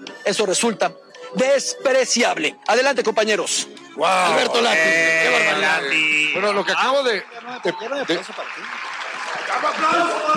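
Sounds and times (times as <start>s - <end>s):
speech: 0.3s - 8.9s, 9.5s - 10.3s
audience applause: 6.6s - 10.3s.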